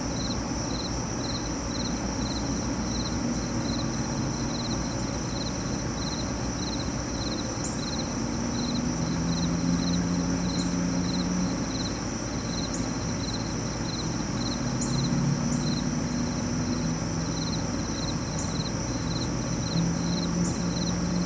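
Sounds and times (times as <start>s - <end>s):
crickets and cicadas chirring in a city park: 0.0s - 21.2s
passing traffic: 1.1s - 21.2s.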